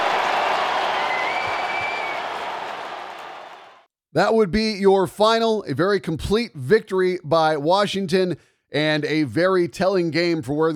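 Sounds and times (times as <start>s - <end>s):
arena crowd applauding at SAP Center at San Jose: 0.0s - 3.9s
speech: 4.2s - 10.7s.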